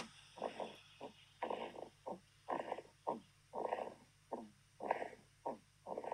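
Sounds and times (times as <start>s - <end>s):
little raspy snores: 1.4s - 6.1s.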